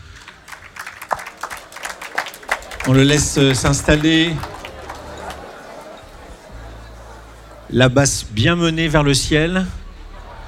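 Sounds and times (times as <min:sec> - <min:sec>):
scattered hand claps from an audience at a live concert: 0:00.1 - 0:06.5
laughter: 0:01.2 - 0:10.4
speech: 0:02.9 - 0:04.5, 0:07.7 - 0:09.8.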